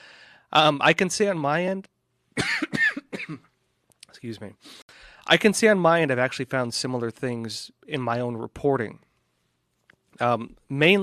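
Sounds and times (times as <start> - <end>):
speech: 0.5 - 3.5, 4.2 - 9.1, 10.2 - 11.0
coughing after choking on a drink: 2.4 - 3.6.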